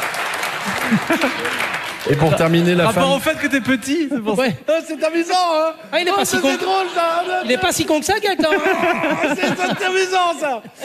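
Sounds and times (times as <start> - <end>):
audience applause: 0.0 - 3.9
laughter: 0.6 - 3.1, 4.6 - 10.8
speech: 0.9 - 10.8.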